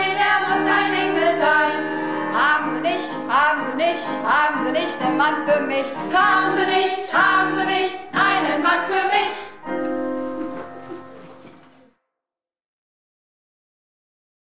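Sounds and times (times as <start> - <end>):
soprano singing at rehearsal: 0.0 - 10.0.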